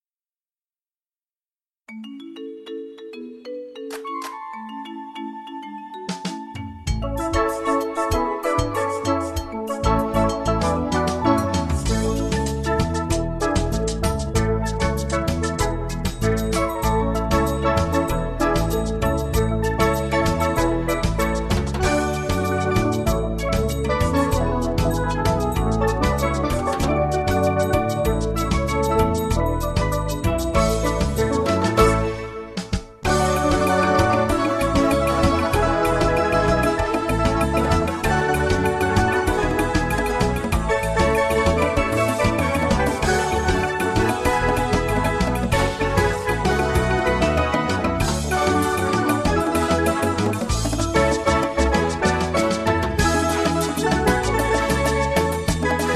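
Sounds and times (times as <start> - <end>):
musical accompaniment: 1.9 - 55.9.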